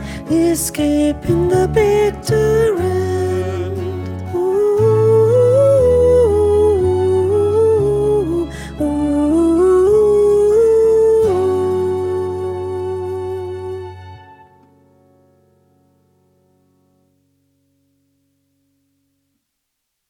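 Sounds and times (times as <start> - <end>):
soprano voice: 0.0 - 14.4.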